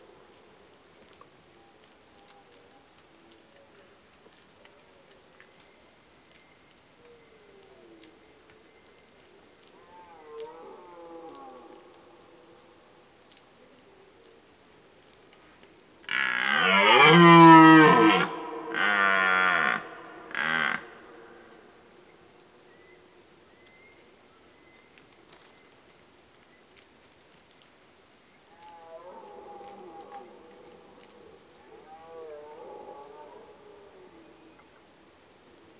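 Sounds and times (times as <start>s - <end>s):
red deer stag roaring: 16.1s - 21.6s.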